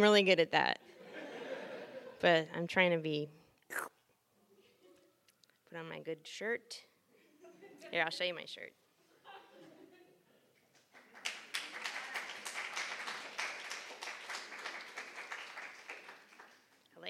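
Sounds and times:
speech: 0:00.0 - 0:01.0, 0:02.2 - 0:03.9, 0:05.7 - 0:06.9, 0:07.8 - 0:08.8
laughter: 0:00.9 - 0:02.2, 0:07.3 - 0:08.0, 0:09.1 - 0:12.7
audience clapping: 0:10.7 - 0:16.9.

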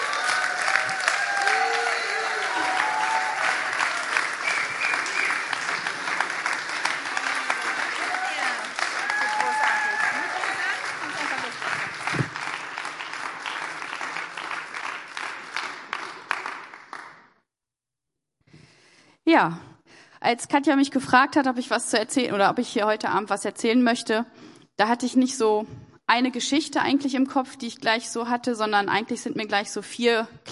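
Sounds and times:
big audience applause: 0:00.0 - 0:17.3
speech: 0:19.4 - 0:19.6, 0:20.2 - 0:30.4.

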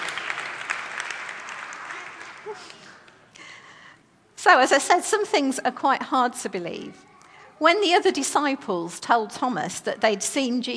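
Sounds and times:
audience applause: 0:00.0 - 0:03.2
speech: 0:02.5 - 0:02.8, 0:04.4 - 0:10.7.

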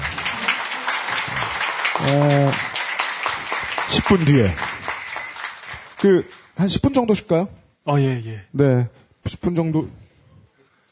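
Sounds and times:
applause from a small group: 0:00.0 - 0:06.6
speech: 0:02.0 - 0:02.7, 0:04.0 - 0:04.7, 0:06.0 - 0:10.0.

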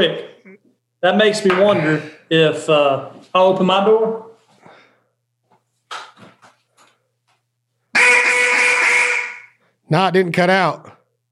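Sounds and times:
speech: 0:00.0 - 0:00.3, 0:01.0 - 0:04.3, 0:09.9 - 0:11.0
duck call quacking: 0:07.9 - 0:09.6.

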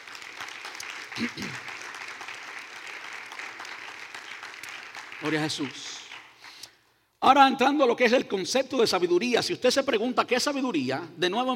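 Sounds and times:
audience applause: 0:00.0 - 0:06.6
speech: 0:01.2 - 0:01.7, 0:05.2 - 0:06.0, 0:07.2 - 0:11.5.

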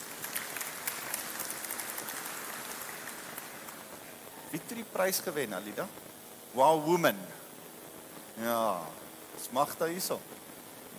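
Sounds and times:
audience applause: 0:00.0 - 0:04.0
speech: 0:04.5 - 0:07.4, 0:08.4 - 0:10.4.

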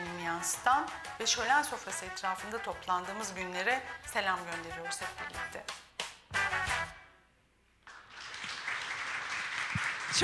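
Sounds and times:
speech: 0:00.4 - 0:05.9
audience applause: 0:07.9 - 0:10.2.

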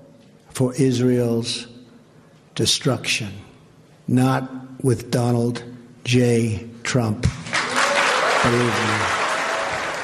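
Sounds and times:
speech: 0:00.6 - 0:01.7, 0:02.6 - 0:03.5, 0:04.1 - 0:07.4, 0:08.4 - 0:09.2
Israeli audience applauding a Donald Trump speech: 0:07.4 - 0:10.0.

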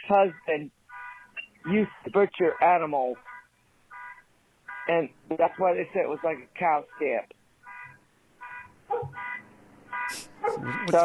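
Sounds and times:
speech: 0:00.0 - 0:00.8, 0:01.6 - 0:03.3, 0:04.9 - 0:07.4, 0:10.5 - 0:11.0
car alarm going off: 0:00.9 - 0:01.5, 0:02.1 - 0:04.9, 0:07.7 - 0:11.0.

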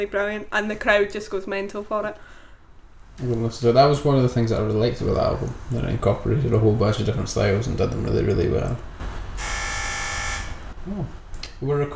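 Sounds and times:
speech: 0:00.0 - 0:02.4, 0:03.2 - 0:09.5, 0:10.8 - 0:11.9
low rumble: 0:02.9 - 0:11.4
electric door buzzer: 0:09.0 - 0:10.8.

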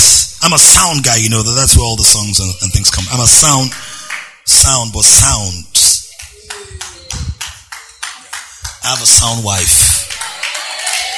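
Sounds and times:
speech: 0:00.0 - 0:03.9, 0:04.5 - 0:05.9, 0:08.9 - 0:10.0
audience clapping in unison: 0:02.9 - 0:04.8, 0:06.1 - 0:11.1.

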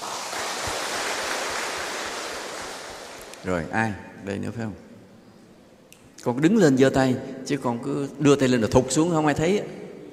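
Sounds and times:
audience applause: 0:00.0 - 0:03.4
speech: 0:03.4 - 0:04.9, 0:06.2 - 0:10.1.

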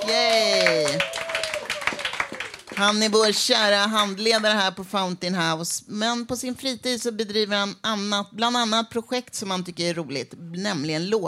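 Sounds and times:
vocal cheer: 0:00.0 - 0:02.6
audience clapping: 0:00.0 - 0:04.6
speech: 0:02.8 - 0:11.2.

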